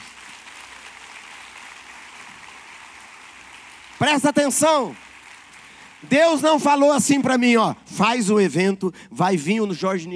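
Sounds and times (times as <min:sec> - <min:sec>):
audience applause: 0:00.0 - 0:06.8
speech: 0:04.0 - 0:05.1, 0:06.0 - 0:10.1.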